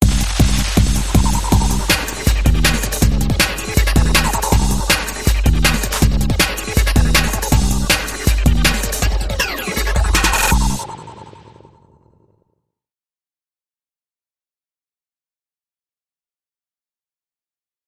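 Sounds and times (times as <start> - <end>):
dark electro music: 0.0 - 12.2.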